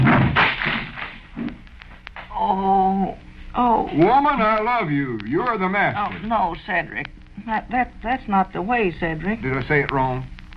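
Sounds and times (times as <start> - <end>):
wooden chair breaking apart: 0.0 - 1.3
speech: 3.9 - 10.5.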